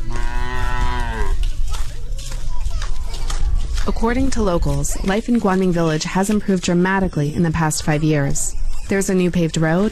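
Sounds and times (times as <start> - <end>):
water buffalo lowing: 0.0 - 1.5
outdoor noise: 0.0 - 9.9
speech: 3.9 - 9.9.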